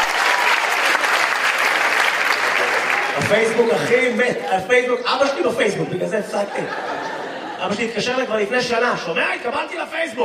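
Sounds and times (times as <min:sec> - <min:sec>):
audience applause: 0:00.0 - 0:04.8
laughter: 0:03.2 - 0:10.2
speech: 0:03.3 - 0:07.0, 0:07.6 - 0:10.2.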